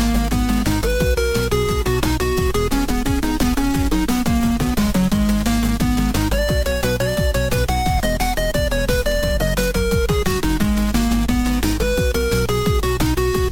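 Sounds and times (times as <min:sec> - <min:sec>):
galactic groove music: 0:00.0 - 0:13.4.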